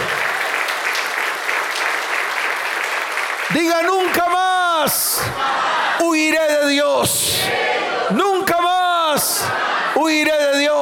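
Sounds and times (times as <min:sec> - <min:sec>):
audience applause: 0:00.0 - 0:06.2
speech: 0:03.6 - 0:08.4, 0:09.1 - 0:10.7.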